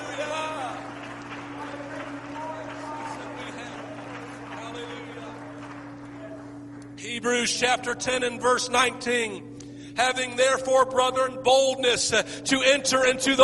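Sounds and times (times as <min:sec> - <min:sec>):
audience applause: 0:00.0 - 0:07.0
speech: 0:07.2 - 0:13.4.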